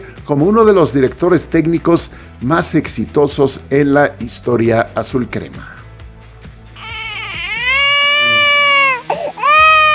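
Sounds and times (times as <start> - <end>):
speech: 0.3 - 5.8
baby crying: 6.8 - 9.9.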